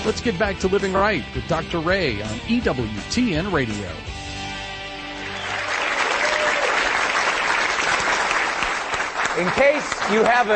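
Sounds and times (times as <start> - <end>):
speech: 0.0 - 4.2, 9.4 - 10.5
studio audience clapping: 5.1 - 10.5.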